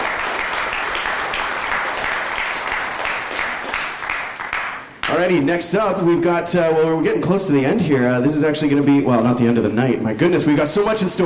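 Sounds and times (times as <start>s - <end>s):
round of applause: 0.0s - 5.2s
speech: 5.2s - 11.2s.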